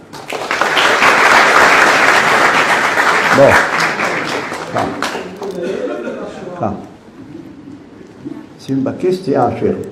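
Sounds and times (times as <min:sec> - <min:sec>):
audience applause: 0:00.0 - 0:05.4
speech: 0:03.4 - 0:03.8, 0:04.7 - 0:05.8, 0:06.6 - 0:06.9, 0:08.7 - 0:09.9.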